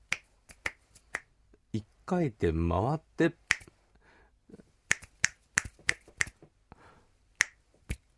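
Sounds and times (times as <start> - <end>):
repeated finger snapping: 0.1 - 1.3, 3.5 - 3.7, 4.9 - 6.4, 7.4 - 8.0
speech: 1.7 - 3.4.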